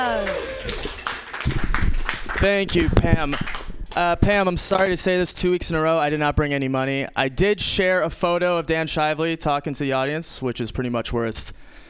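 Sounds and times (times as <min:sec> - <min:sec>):
small audience clapping for a comedian: 0:00.0 - 0:05.0
speech: 0:02.4 - 0:11.8.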